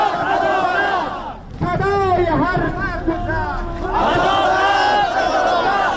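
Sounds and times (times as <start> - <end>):
Sadat protesters in Bamiyan province chanting slogans at a peaceful demonstration: 0.0 - 1.7, 2.4 - 5.9.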